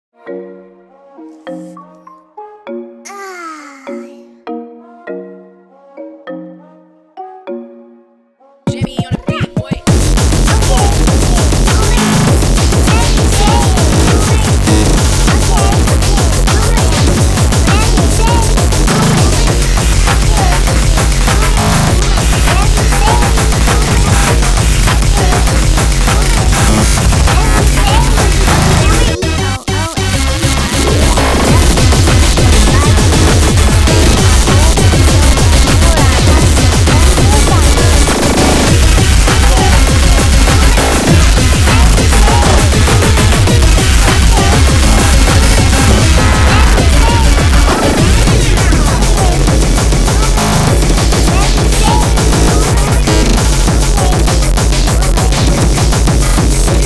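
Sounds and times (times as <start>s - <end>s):
type beat without transients: 8.7s - 56.8s.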